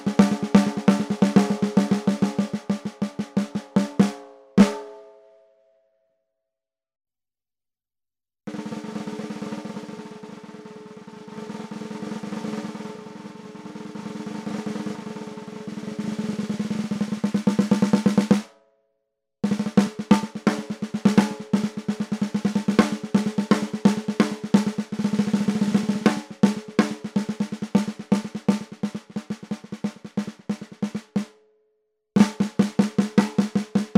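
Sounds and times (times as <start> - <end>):
14x5 snare drum: 0.0 - 4.9, 8.5 - 18.5, 19.4 - 31.4, 32.2 - 33.9.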